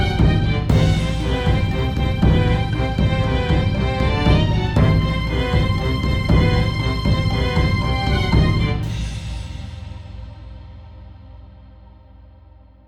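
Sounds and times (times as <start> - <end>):
Indian melodramatic music: 0.0 - 10.2.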